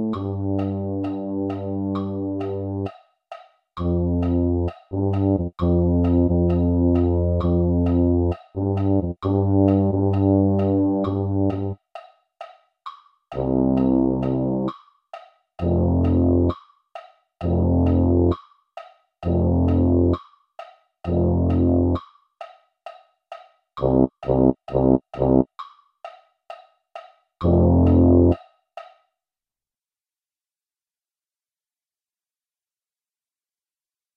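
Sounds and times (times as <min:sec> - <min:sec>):
tuba: 0:00.0 - 0:02.9, 0:03.8 - 0:11.8, 0:13.4 - 0:14.7, 0:15.6 - 0:16.6, 0:17.4 - 0:18.4, 0:19.2 - 0:20.2, 0:21.1 - 0:22.0, 0:23.8 - 0:25.5, 0:27.4 - 0:28.4.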